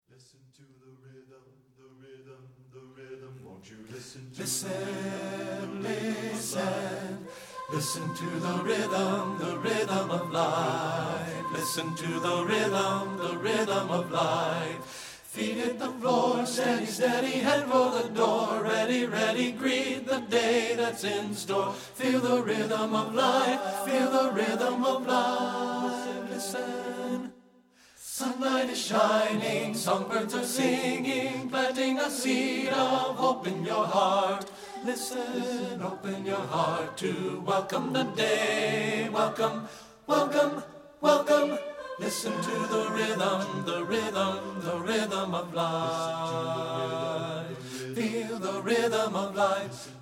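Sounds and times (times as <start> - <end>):
tenor singing: 0.5 - 27.3, 28.1 - 50.0.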